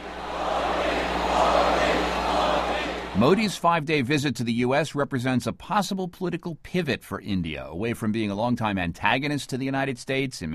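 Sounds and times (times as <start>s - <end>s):
sold-out arena crowd cheering: 0.0s - 3.6s
speech: 3.2s - 10.5s.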